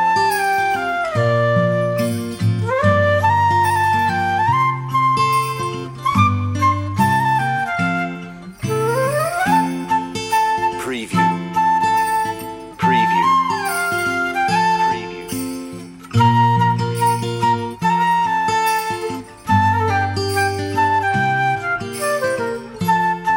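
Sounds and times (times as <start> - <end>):
guitar playing a Christmas song: 0.0 - 23.3.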